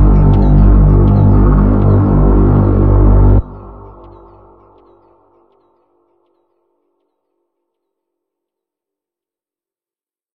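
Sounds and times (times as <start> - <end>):
slowed funk song: 0.0 - 5.0.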